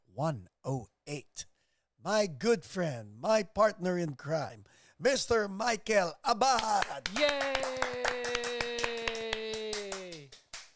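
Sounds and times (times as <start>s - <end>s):
speech: 0.2s - 8.1s
elaborate handshake of hand slaps and claps between two podcast hosts: 6.5s - 10.7s.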